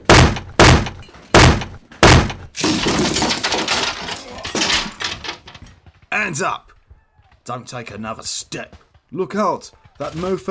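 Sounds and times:
door being broken down: 0:00.0 - 0:05.7
splintering and crashing debris: 0:00.0 - 0:05.8
speech: 0:06.2 - 0:06.7, 0:07.4 - 0:10.5.

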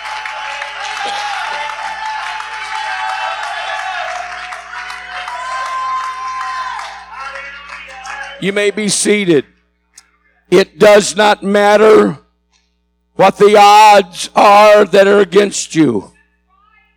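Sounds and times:
large audience shouting and whooping: 0:00.0 - 0:07.2
large audience clapping: 0:00.0 - 0:08.8
speech: 0:01.0 - 0:01.3, 0:08.4 - 0:09.6, 0:10.5 - 0:12.2, 0:13.2 - 0:16.1.

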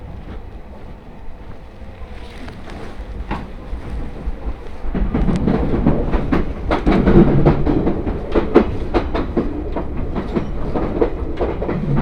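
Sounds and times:
Tohoku Main Line E721 series train carriage rumbling: 0:00.0 - 0:12.0
train clicks and rattles: 0:04.6 - 0:12.0.

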